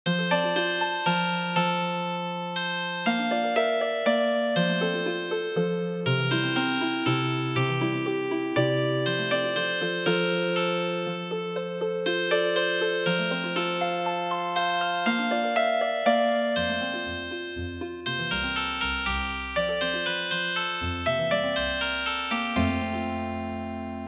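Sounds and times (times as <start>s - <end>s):
healing harp music: 0.2s - 24.0s.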